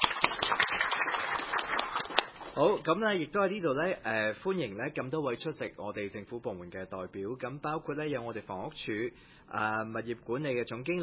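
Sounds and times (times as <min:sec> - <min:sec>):
applause at a Wong Tai Sin District Council meeting: 0:00.0 - 0:02.8
speech: 0:02.6 - 0:11.0.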